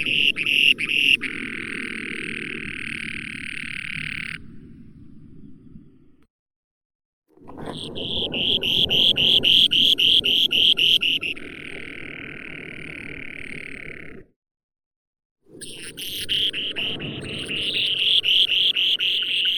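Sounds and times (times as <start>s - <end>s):
spoon-billed sandpiper Eurynorhynchus pygmaeus calling: 0.0s - 4.4s, 7.7s - 11.6s, 15.6s - 19.5s.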